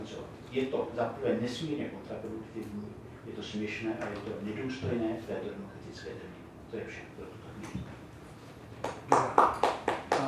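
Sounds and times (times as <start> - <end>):
speech: 0.1 - 7.9
single person applauding in courtroom: 8.8 - 10.2.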